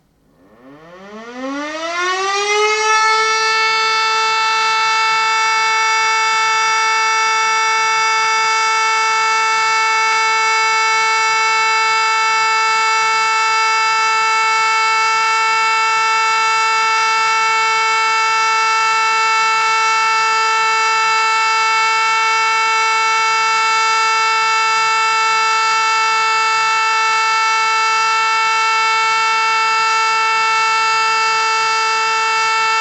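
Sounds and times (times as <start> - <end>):
all-clear siren: 0.3 - 32.8.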